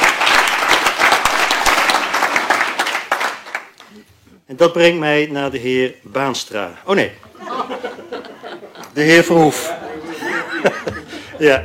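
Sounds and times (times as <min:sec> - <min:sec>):
audience applause: 0:00.0 - 0:03.8
speech: 0:04.5 - 0:07.3, 0:09.0 - 0:09.8, 0:11.4 - 0:11.6
laughter: 0:07.3 - 0:11.6.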